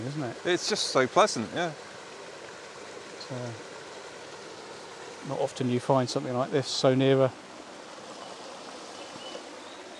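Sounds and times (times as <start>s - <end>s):
small stream flowing: 0.0s - 9.9s
speech: 0.1s - 2.0s, 3.3s - 3.7s, 5.2s - 7.4s.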